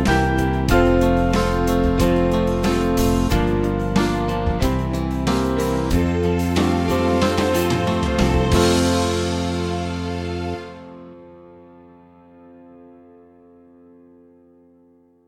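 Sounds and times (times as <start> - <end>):
church band backing music: 0.0 - 11.4.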